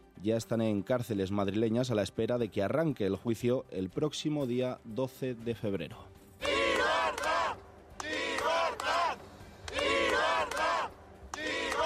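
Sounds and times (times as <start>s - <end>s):
speech: 0.2s - 6.2s
crowd shouting for freedom at protest: 6.4s - 11.8s.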